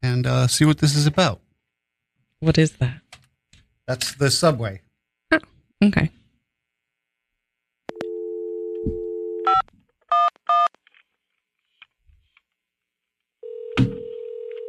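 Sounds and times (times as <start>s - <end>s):
speech: 0.0s - 1.4s, 2.4s - 3.1s, 3.9s - 6.2s
telephone dial tone: 7.9s - 9.6s, 13.4s - 14.6s.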